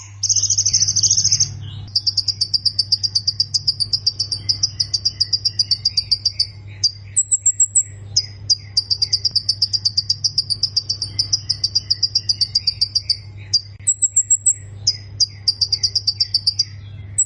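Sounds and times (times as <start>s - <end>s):
low hum: 0.0s - 17.2s
plain prinia singing: 0.0s - 17.2s.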